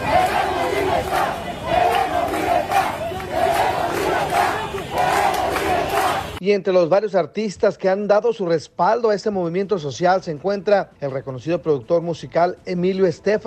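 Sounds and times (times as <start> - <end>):
protest crowd chanting: 0.0 - 6.4
speech: 6.4 - 13.4.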